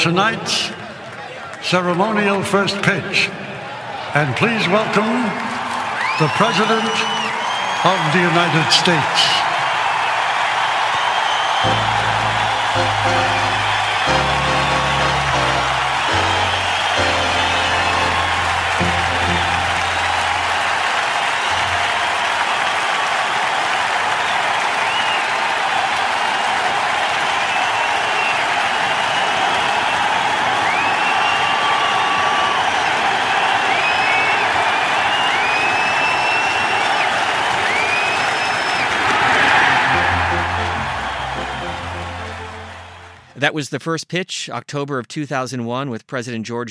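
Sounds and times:
speech: 0.0 - 0.8, 1.6 - 3.5, 4.1 - 5.6, 6.2 - 7.2, 7.8 - 9.5, 11.6 - 12.0, 43.4 - 46.6
stadium crowd cheering and applauding at Yankee Stadium, New York: 0.0 - 43.4.

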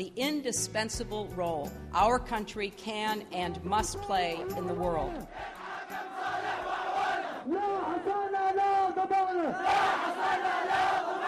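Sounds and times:
speech: 0.0 - 5.6, 9.0 - 11.0
angry protesters in Yemen chanting and shouting: 4.4 - 11.2.

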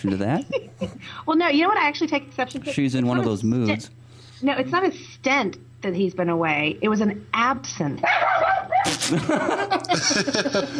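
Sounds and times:
laughter: 0.0 - 1.1, 8.8 - 10.7
speech: 0.0 - 10.7
Yappy the Grammar Dog barking in high yips: 8.0 - 8.9.

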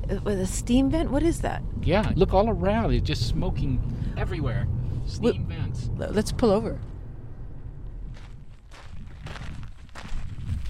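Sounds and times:
low rumbling background: 0.0 - 10.6
speech: 0.1 - 6.9
footsteps crunching outdoors: 7.9 - 10.6.

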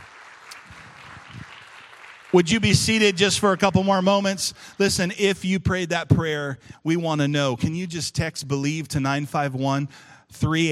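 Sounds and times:
audience applause: 0.0 - 3.8
speech: 2.3 - 10.7.

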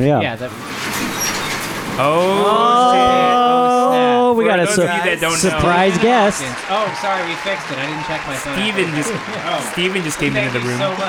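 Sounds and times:
speech: 0.0 - 0.9, 2.0 - 3.7, 4.3 - 11.0
garage door opening: 0.0 - 3.0
laughter: 1.9 - 11.0.

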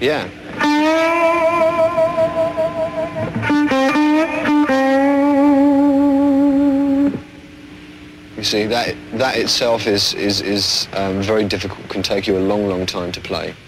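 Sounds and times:
speech: 0.0 - 1.4, 8.4 - 13.6
guitar string bending with vibrato: 0.1 - 7.4.

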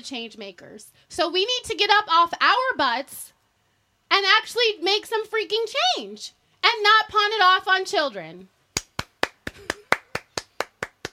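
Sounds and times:
speech: 0.0 - 3.4, 4.1 - 8.6
clap track applause: 8.8 - 11.1.

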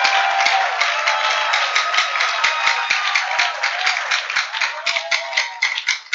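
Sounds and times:
audience clapping: 0.0 - 6.1.

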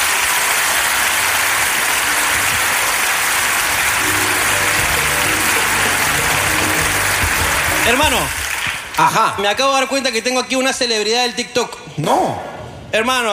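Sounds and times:
applause: 0.0 - 9.7
speech: 7.9 - 8.4, 9.0 - 13.3.

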